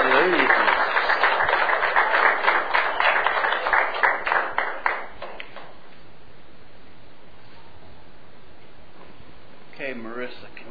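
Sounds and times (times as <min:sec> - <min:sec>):
audience clapping hands: 0:00.0 - 0:05.8.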